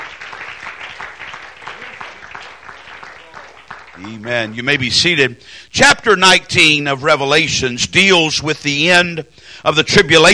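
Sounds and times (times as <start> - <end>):
audience clapping hands: 0.0 - 5.2
speech: 4.0 - 10.3.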